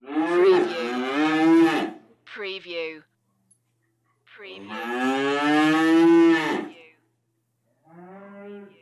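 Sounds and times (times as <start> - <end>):
two cows mooing indoors: 0.0 - 2.0, 4.6 - 6.8, 7.8 - 8.8.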